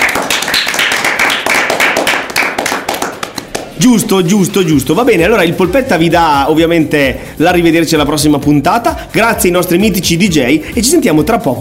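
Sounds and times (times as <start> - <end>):
crowd applause: 0.0 - 3.8
speech: 3.8 - 11.5.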